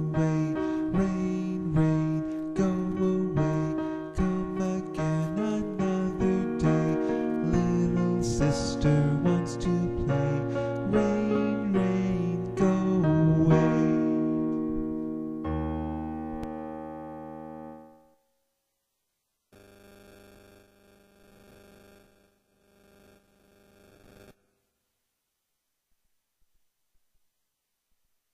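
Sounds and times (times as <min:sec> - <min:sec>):
minor key rain songs: 0:00.0 - 0:18.4.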